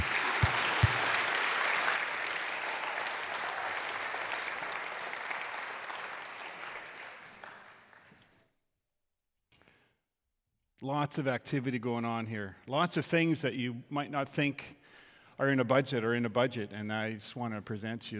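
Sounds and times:
audience cheering and clapping: 0.0s - 7.9s
speech: 10.8s - 18.1s.

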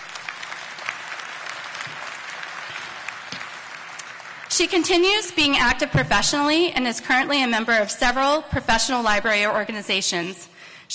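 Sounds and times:
round of applause: 0.0s - 4.7s
speech: 4.6s - 10.9s.

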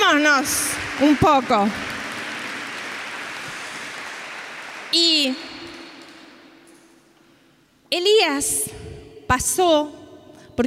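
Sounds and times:
audience applause: 0.0s - 6.4s
speech: 0.2s - 1.9s, 4.9s - 5.5s, 7.9s - 10.0s.

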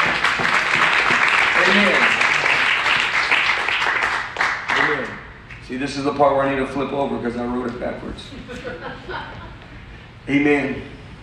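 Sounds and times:
crowd applause: 0.0s - 5.1s
speech: 1.8s - 2.0s, 5.8s - 9.6s, 10.3s - 11.0s
laughter: 8.3s - 9.8s.

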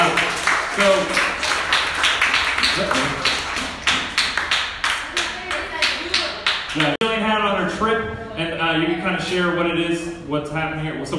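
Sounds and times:
audience clapping: 0.0s - 7.0s
speech: 0.8s - 1.2s, 6.8s - 11.1s.

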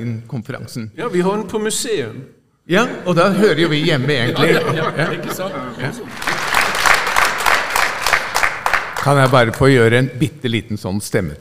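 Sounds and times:
speech: 0.0s - 6.4s, 9.0s - 11.3s
laughter: 3.3s - 7.1s
audience applause: 5.2s - 9.8s.

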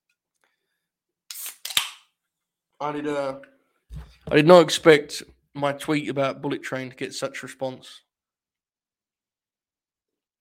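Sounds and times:
soda can being opened: 1.3s - 2.0s
speech: 2.8s - 3.6s, 4.3s - 8.1s.

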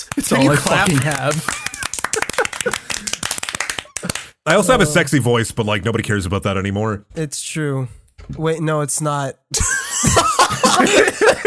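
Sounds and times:
applause: 0.0s - 4.4s
laughter: 0.0s - 5.1s, 9.5s - 11.4s
speech: 0.2s - 1.6s, 2.6s - 3.1s, 4.5s - 11.4s.

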